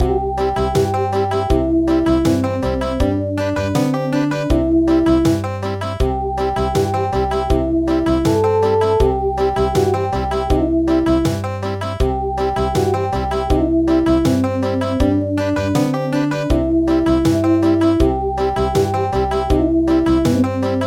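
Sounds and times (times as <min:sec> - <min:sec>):
country music: 0:00.0 - 0:20.8.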